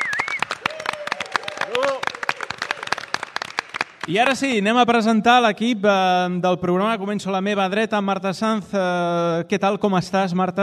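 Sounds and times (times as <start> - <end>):
brief cheer: 0.0 - 3.0
group applauding: 0.0 - 4.6
speech: 4.0 - 10.6.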